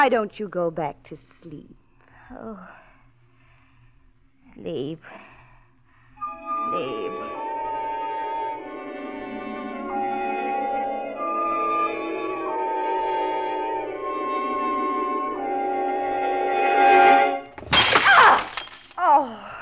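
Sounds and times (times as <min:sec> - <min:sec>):
speech: 0:00.0 - 0:02.8, 0:04.6 - 0:05.3, 0:06.4 - 0:07.4
swelling orchestral music: 0:06.2 - 0:17.6
vase knocked off mantel, shattering: 0:17.6 - 0:19.0.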